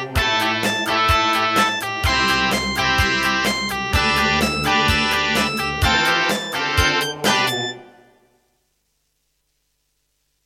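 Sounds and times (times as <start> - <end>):
Hammond GM-1000 sound: 0.0 - 8.2.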